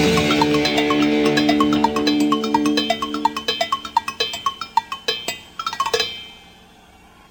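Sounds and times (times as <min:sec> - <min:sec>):
cowbell: 0:00.2 - 0:06.6.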